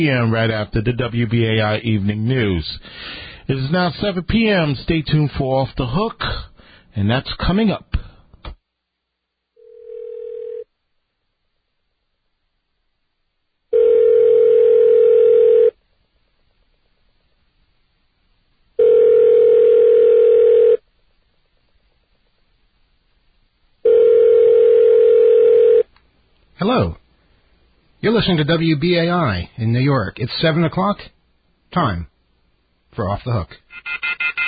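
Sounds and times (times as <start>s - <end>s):
speech: 0.0s - 7.9s, 28.1s - 32.1s, 33.0s - 34.3s
telephone ringing: 9.6s - 10.7s, 13.7s - 15.8s, 18.8s - 20.8s, 23.8s - 25.9s, 33.7s - 34.4s.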